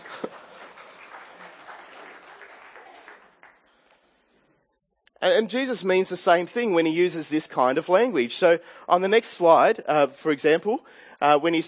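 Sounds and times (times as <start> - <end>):
audience clapping: 0.0 - 4.2
speech: 5.2 - 11.6.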